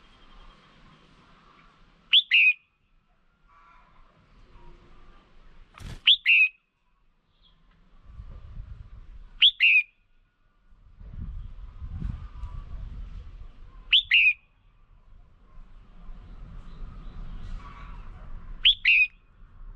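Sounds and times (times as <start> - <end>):
Red-whiskered bulbul whistled call: 2.1 - 2.7, 6.0 - 6.6, 9.4 - 10.0, 13.9 - 14.5, 18.6 - 19.2.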